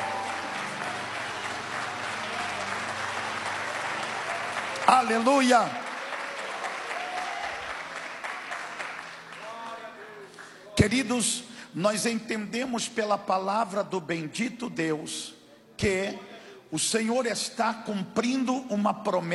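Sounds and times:
audience giving a round of applause: 0.0s - 10.6s
speech: 4.9s - 5.8s, 10.8s - 19.3s.

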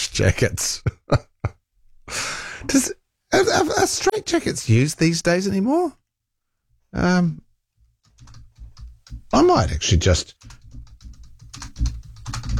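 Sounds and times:
speech: 0.2s - 1.3s, 2.6s - 6.0s, 6.9s - 7.4s, 9.3s - 10.6s
typing on a computer keyboard: 8.0s - 12.5s.

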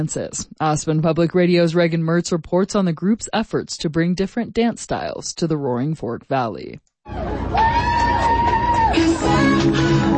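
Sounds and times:
speech: 0.0s - 8.3s
outdoor crowd cheering and whooping at street dance show: 7.1s - 10.1s.

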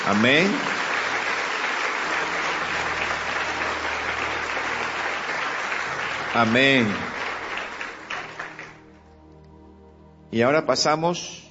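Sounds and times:
applause: 0.0s - 8.9s
speech: 0.1s - 0.7s, 6.3s - 7.1s, 10.3s - 11.4s.

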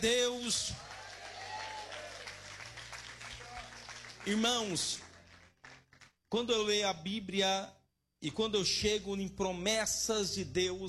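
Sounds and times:
speech: 0.0s - 1.0s, 4.2s - 5.1s, 6.3s - 10.8s
audience clapping: 0.8s - 6.2s.

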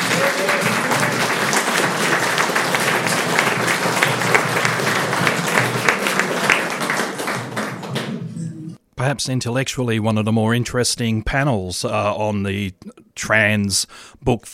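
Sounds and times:
crowd applauding: 0.0s - 8.6s
speech: 9.1s - 14.5s.

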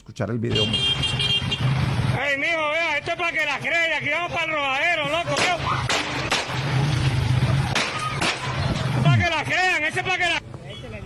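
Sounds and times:
speech: 0.2s - 5.8s, 9.3s - 10.4s
gunshots in street video: 5.3s - 9.3s.

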